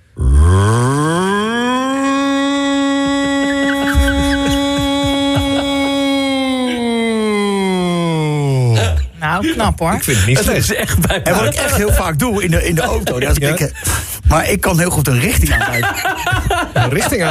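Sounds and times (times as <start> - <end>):
voice imitating an air raid siren: 0.3 - 8.7
laughter: 2.8 - 14.1, 15.2 - 17.2
speech: 9.4 - 17.2.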